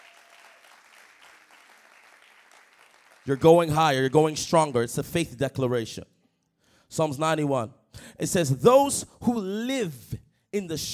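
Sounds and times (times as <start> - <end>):
audience clapping: 0.0 - 4.4
speech: 3.3 - 6.2, 6.9 - 10.9.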